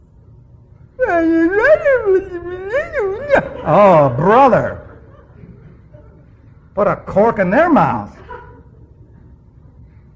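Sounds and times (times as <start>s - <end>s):
speech: 1.0s - 4.8s, 6.8s - 8.3s
voice imitating a whining cry: 1.0s - 5.0s
laughter: 1.4s - 6.8s, 8.0s - 9.3s.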